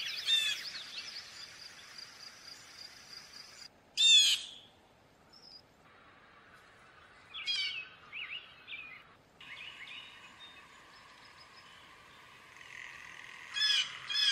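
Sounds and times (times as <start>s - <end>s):
blue jay giving harsh buzzy jay calls: 0.2s - 0.7s, 4.0s - 4.7s, 12.5s - 14.3s.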